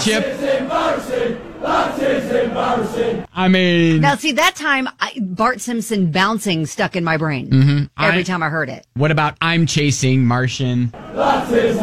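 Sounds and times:
soccer crowd chanting: 0.0s - 3.3s, 10.9s - 11.8s
speech: 0.0s - 11.8s.

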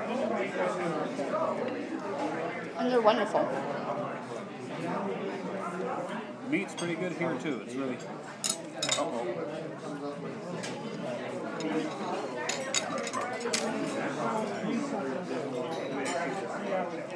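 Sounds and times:
murmur of chatter from many people: 0.0s - 17.1s
speech: 2.9s - 3.9s, 6.5s - 8.3s
utensils and dishes clinking and rattling: 6.7s - 7.0s, 8.4s - 9.1s, 11.6s - 14.5s.

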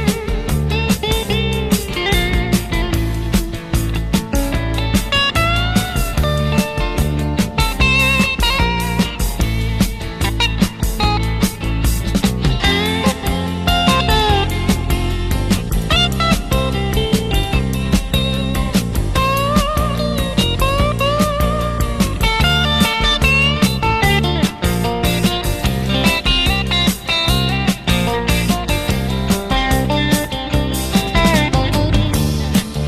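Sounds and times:
electric guitar lead in a clean tone: 0.0s - 32.8s
rock band with steady drums and bass: 0.0s - 32.8s.

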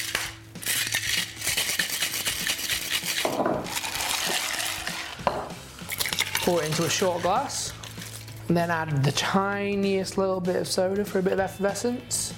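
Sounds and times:
cocktail shaker with ice being shaken: 0.0s - 5.2s, 5.9s - 8.4s
speech: 6.5s - 7.8s, 8.5s - 12.3s.

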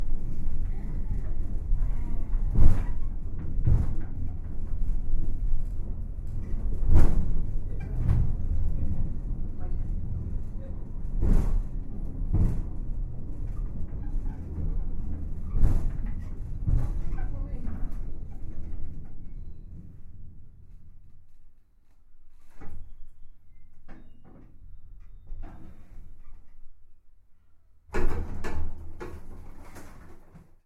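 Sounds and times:
funicular cliff railway: 0.0s - 20.0s.

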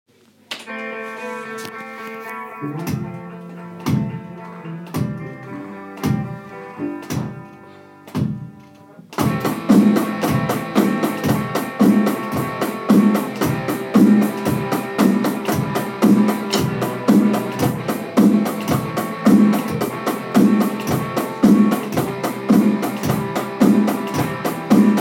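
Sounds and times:
four-four rock drum beat: 2.8s - 3.2s, 3.8s - 4.3s, 4.9s - 5.2s, 6.0s - 7.5s, 8.1s - 8.6s, 9.2s - 24.9s.

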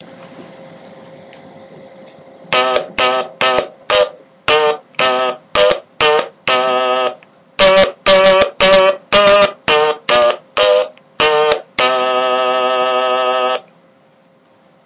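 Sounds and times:
stylophone march: 2.5s - 13.6s.

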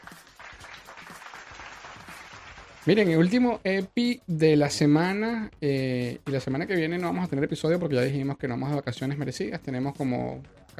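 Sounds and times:
applause: 0.0s - 3.3s
speech: 2.8s - 10.7s.

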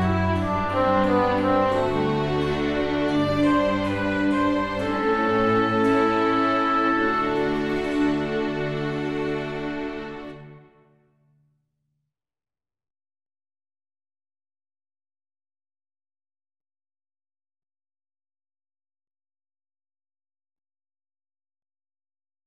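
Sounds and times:
baroque canon backing track: 0.0s - 10.8s.

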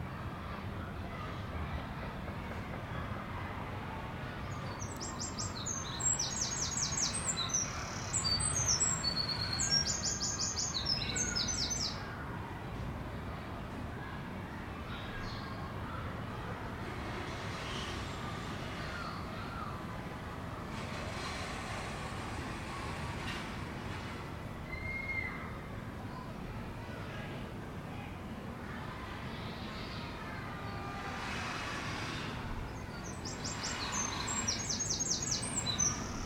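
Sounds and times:
children playing in a garden: 0.0s - 36.2s
birdsong in a garden: 4.4s - 12.1s, 32.7s - 36.2s.

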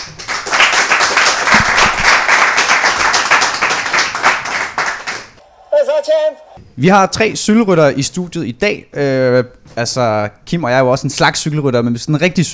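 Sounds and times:
studio audience clapping for a panel on a Danish cycling program: 0.0s - 5.4s
speech: 6.0s - 12.5s.

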